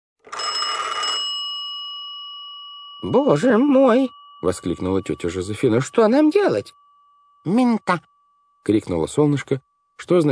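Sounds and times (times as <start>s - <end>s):
telephone bell ringing: 0.2s - 5.2s
speech: 3.0s - 6.8s, 7.4s - 10.3s.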